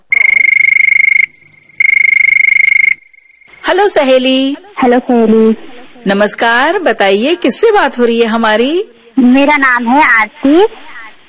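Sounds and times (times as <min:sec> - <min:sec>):
telephone ringing with electronic trill: 0:00.0 - 0:03.6
speech: 0:03.7 - 0:11.2.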